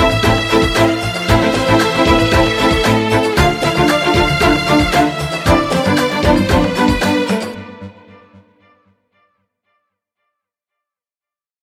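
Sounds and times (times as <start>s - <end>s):
staccato pizzicato notes with modulated glissando: 0.0s - 8.5s.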